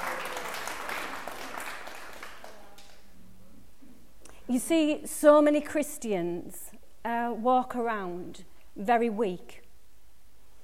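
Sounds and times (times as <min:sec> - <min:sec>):
audience applause: 0:00.0 - 0:03.0
speech: 0:04.5 - 0:09.6.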